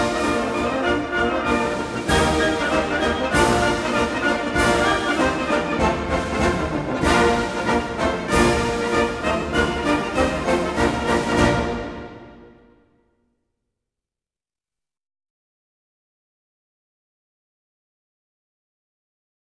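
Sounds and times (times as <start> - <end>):
military district headquarters band playing a march: 0.0 - 12.6.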